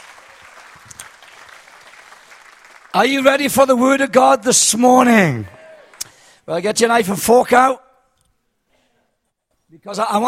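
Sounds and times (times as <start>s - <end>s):
audience clapping: 0.0s - 3.8s, 5.3s - 6.2s
speech: 3.0s - 5.6s, 6.5s - 7.8s, 9.7s - 10.2s.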